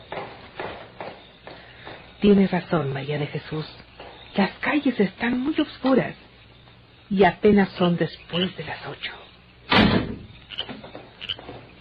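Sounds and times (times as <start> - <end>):
speech: 2.2 - 3.8, 4.4 - 6.2, 7.1 - 9.2
door pulled shut as a servant leaves a house at night: 9.7 - 11.7.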